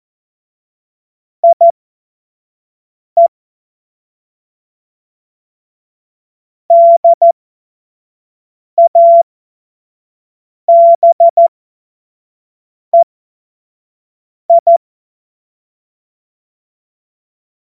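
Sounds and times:
Morse code course tones: 0:01.4 - 0:01.7, 0:06.7 - 0:07.2, 0:10.7 - 0:11.5, 0:14.5 - 0:14.8.

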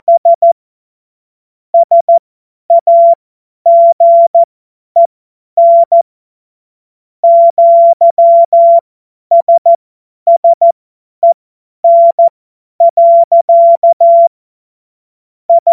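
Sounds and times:
CW Morse code beeps: 0:00.0 - 0:00.6, 0:01.8 - 0:06.0, 0:07.2 - 0:14.3, 0:15.5 - 0:15.7.

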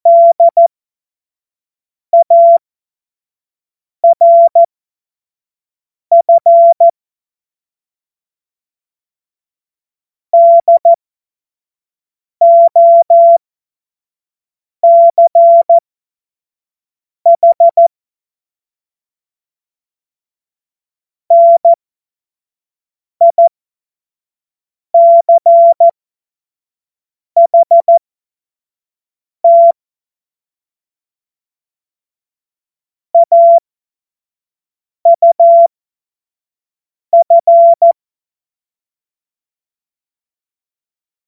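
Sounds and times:
CW Morse code beeps: 0:00.1 - 0:00.6, 0:02.2 - 0:02.6, 0:04.0 - 0:04.7, 0:06.1 - 0:06.9, 0:10.4 - 0:11.0, 0:12.4 - 0:13.4, 0:14.8 - 0:15.8, 0:17.3 - 0:17.9, 0:21.3 - 0:21.8, 0:23.2 - 0:23.5, 0:25.0 - 0:25.9, 0:27.4 - 0:28.0, 0:29.4 - 0:29.7, 0:33.2 - 0:33.6, 0:35.1 - 0:35.7, 0:37.2 - 0:38.0.

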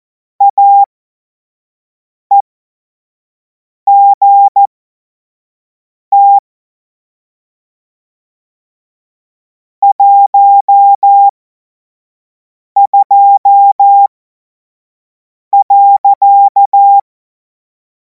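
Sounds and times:
Morse code course tones: 0:00.4 - 0:00.9, 0:03.9 - 0:04.7, 0:06.1 - 0:06.4, 0:09.8 - 0:11.3, 0:12.8 - 0:14.1, 0:15.6 - 0:17.0.

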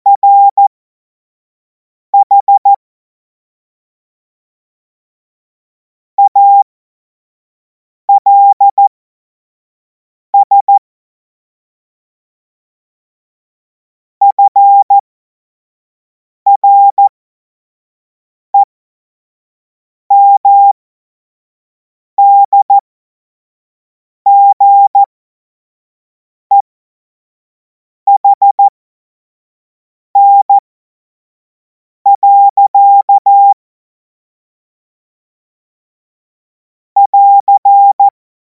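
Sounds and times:
Morse code tones for a Morse course: 0:00.1 - 0:00.6, 0:02.2 - 0:02.7, 0:06.2 - 0:06.6, 0:08.2 - 0:08.8, 0:14.3 - 0:14.9, 0:16.5 - 0:17.0, 0:20.1 - 0:20.8, 0:22.2 - 0:22.7, 0:24.3 - 0:25.1, 0:28.1 - 0:28.7, 0:30.2 - 0:30.6, 0:32.1 - 0:33.6, 0:37.0 - 0:38.2.

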